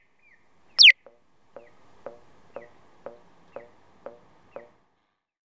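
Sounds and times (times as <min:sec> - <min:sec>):
piyo crossing signal chirping at an intersection in Moriyama Aichi: 0:00.8 - 0:04.7.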